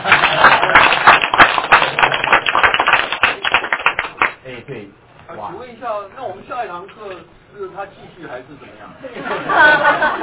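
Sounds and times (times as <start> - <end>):
audience applause: 0.0 - 4.4
speech: 6.0 - 10.2
laughter: 9.0 - 10.2.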